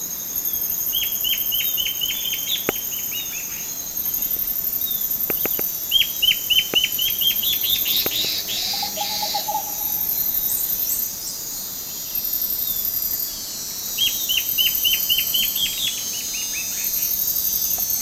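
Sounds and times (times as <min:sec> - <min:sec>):
shrill insect noise: 0:00.0 - 0:18.0
lower chirping bird: 0:00.2 - 0:17.2
bird trilling: 0:05.3 - 0:10.5.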